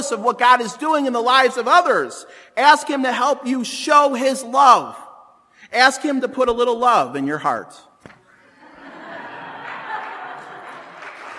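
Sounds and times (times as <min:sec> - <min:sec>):
speech: 0:00.0 - 0:05.0, 0:05.6 - 0:07.9
laughter: 0:08.3 - 0:11.3
audience clapping: 0:09.6 - 0:11.3.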